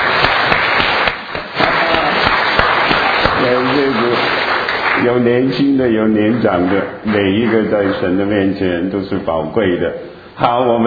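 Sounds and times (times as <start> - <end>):
audience applause: 0.0 - 5.3, 6.3 - 8.3
speech: 5.0 - 10.8.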